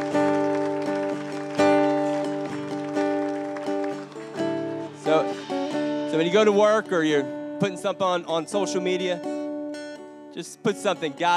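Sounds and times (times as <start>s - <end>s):
people clapping: 0.0s - 5.9s
speech: 6.2s - 9.3s, 10.4s - 11.3s.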